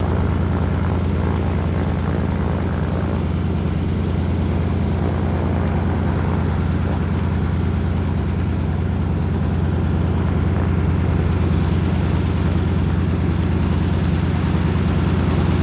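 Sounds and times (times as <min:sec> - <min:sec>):
de Havilland Canada single-engine propeller plane, medium steady: 0:00.0 - 0:15.6.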